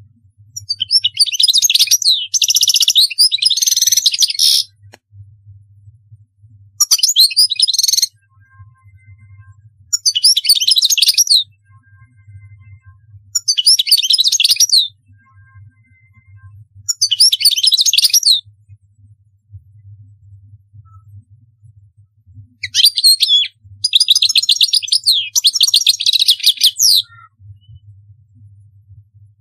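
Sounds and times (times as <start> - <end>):
European goldfinch song: 0.6 - 4.7, 6.8 - 8.1, 9.9 - 11.5, 13.4 - 14.9, 16.9 - 18.4, 22.6 - 27.1.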